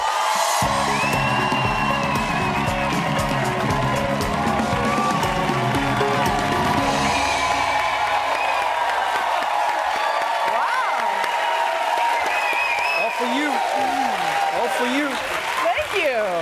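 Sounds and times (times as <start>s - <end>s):
music: 0.0s - 10.3s
talk show audience applause and cheering for a standing ovation: 0.0s - 16.4s.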